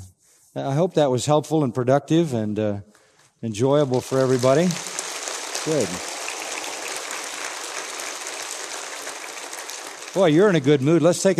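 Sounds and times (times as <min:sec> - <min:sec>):
speech: 0:00.5 - 0:04.9, 0:05.6 - 0:06.1, 0:10.1 - 0:11.3
audience applause: 0:03.8 - 0:11.3.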